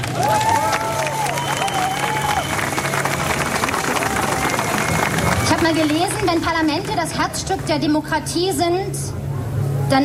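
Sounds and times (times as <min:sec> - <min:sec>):
audience applause: 0:00.0 - 0:07.3
speech: 0:05.6 - 0:09.2.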